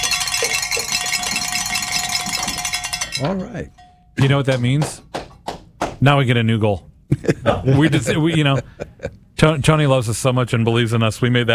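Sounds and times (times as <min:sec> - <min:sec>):
laughter: 0:00.0 - 0:02.8, 0:07.1 - 0:09.2
celebratory bells ringing: 0:00.0 - 0:04.6
speech: 0:03.2 - 0:05.1, 0:06.0 - 0:11.5.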